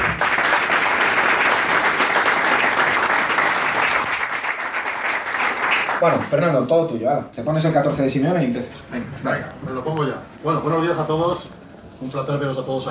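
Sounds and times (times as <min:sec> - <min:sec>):
audience applause: 0:00.0 - 0:06.3
speech: 0:06.0 - 0:12.8.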